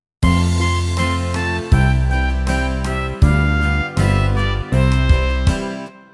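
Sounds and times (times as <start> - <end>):
karaoke singing: 0.2 - 5.8.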